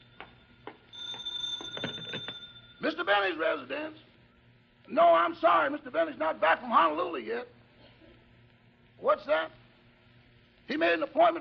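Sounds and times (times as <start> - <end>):
telephone ringing: 0.0 - 3.6
speech: 2.9 - 4.1, 4.9 - 7.6, 9.0 - 9.6, 10.7 - 11.4.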